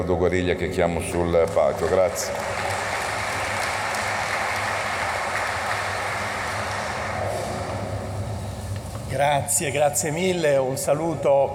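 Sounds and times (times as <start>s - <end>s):
speech: 0.0s - 2.8s, 9.2s - 11.5s
audience applause: 1.2s - 8.3s.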